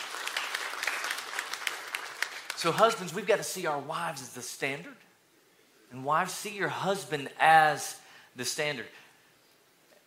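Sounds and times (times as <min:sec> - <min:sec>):
audience clapping: 0:00.0 - 0:03.2
speech: 0:02.6 - 0:05.1, 0:05.9 - 0:09.0.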